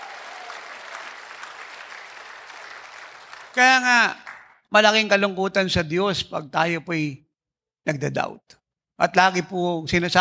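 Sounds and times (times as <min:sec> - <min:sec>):
people clapping: 0:00.0 - 0:04.6
speech: 0:03.6 - 0:07.2, 0:07.8 - 0:10.1.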